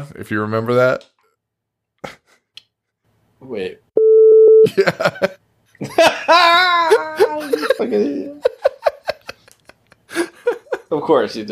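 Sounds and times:
speech: 0:00.0 - 0:01.1, 0:03.4 - 0:03.8, 0:04.7 - 0:08.5, 0:10.9 - 0:11.5
censor beep: 0:04.0 - 0:04.7
laughter: 0:04.7 - 0:10.9.

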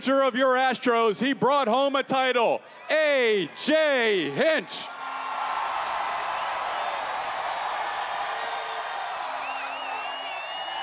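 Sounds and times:
speech: 0:00.0 - 0:05.0
stadium crowd applause and cheering: 0:04.9 - 0:10.8.

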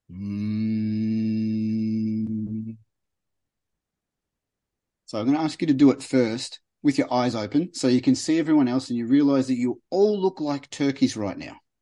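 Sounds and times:
person humming through the nose with mouth closed: 0:00.1 - 0:02.8
speech: 0:05.1 - 0:11.6.

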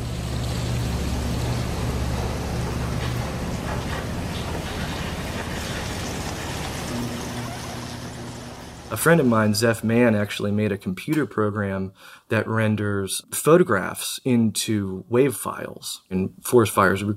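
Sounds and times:
five major rivers in Virginia rushing at flood stage: 0:00.0 - 0:09.3
speech: 0:08.9 - 0:17.1.

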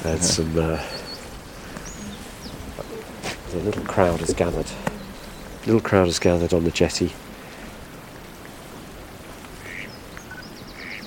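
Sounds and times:
speech: 0:00.0 - 0:01.0, 0:03.5 - 0:05.0, 0:05.6 - 0:07.3
mallard duck quacking: 0:09.6 - 0:09.9.

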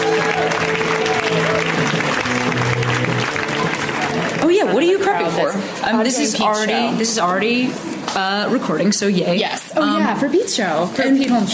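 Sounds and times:
audience applause welcoming a comedian at a comedy set: 0:00.0 - 0:05.5
speech: 0:04.7 - 0:11.5.

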